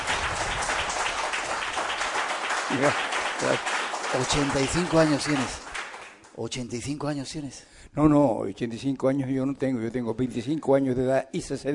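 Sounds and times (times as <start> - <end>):
audience applause: 0.0 - 6.3
speech: 2.7 - 5.6, 6.4 - 11.7.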